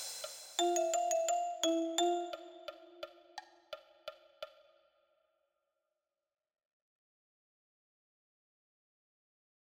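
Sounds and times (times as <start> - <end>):
marimba: 0.6 - 3.1.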